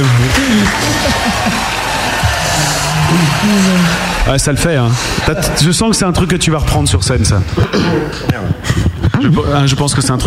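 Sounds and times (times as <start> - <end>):
applause for a performance: 0.0 - 5.4
laughter: 0.0 - 6.0
speech: 3.5 - 10.2.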